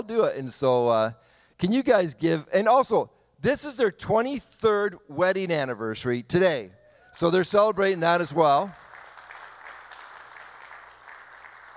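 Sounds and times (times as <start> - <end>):
speech: 0.1 - 8.8
audience applause: 8.2 - 11.7.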